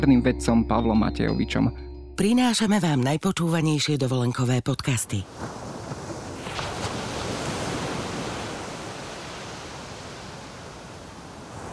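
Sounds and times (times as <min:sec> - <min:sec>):
speech: 0:00.0 - 0:05.6
sea waves: 0:05.1 - 0:11.7.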